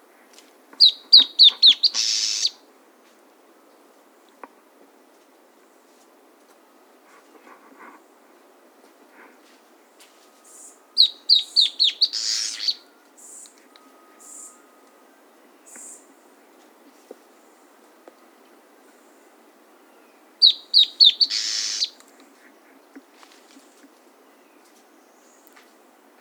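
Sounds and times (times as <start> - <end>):
bird singing sharp falling notes and buzzy trill: 0.8 - 2.6, 10.5 - 16.2, 20.0 - 22.0.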